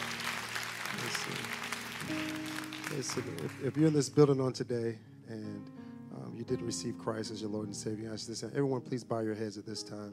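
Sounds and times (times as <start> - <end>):
audience clapping: 0.0 - 4.2
speech: 1.0 - 5.8, 6.4 - 10.1.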